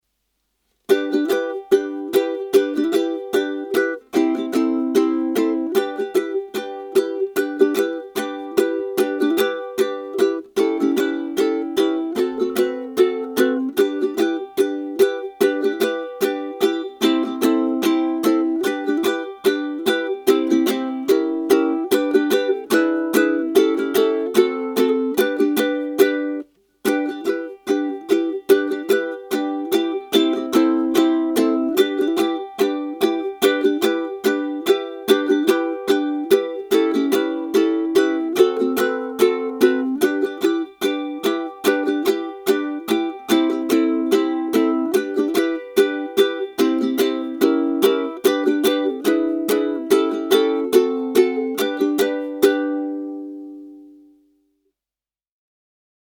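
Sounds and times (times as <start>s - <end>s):
country rock ukulele: 0.8s - 54.1s.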